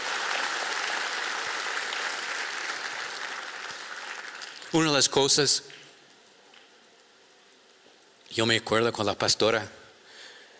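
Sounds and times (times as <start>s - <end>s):
audience applauding loudly: 0.0s - 4.9s
speech: 4.7s - 5.8s, 8.4s - 9.8s.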